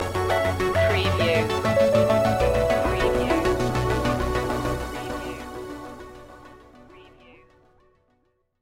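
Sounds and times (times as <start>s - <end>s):
forward thinking musical stinger: 0.8s - 6.3s.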